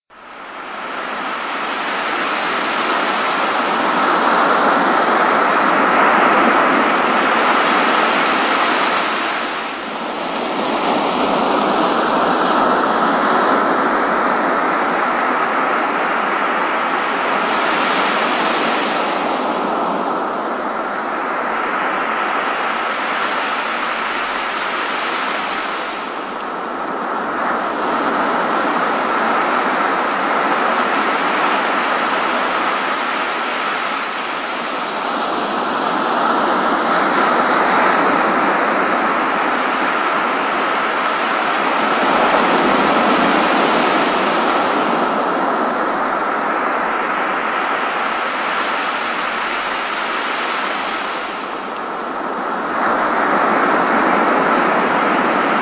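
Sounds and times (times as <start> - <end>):
ocean waves: 0.2 - 55.6.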